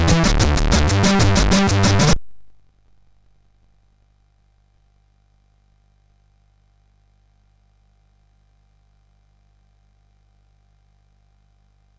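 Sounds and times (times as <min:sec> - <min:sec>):
drum beat on MOS6581R3 sound chip: 0:00.0 - 0:02.2.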